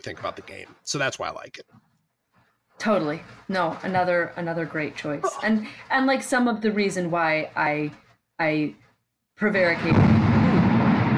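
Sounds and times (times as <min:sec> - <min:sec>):
speech: 0:00.0 - 0:01.9, 0:02.8 - 0:08.8, 0:09.4 - 0:10.3
thunder rumbling: 0:09.6 - 0:11.1.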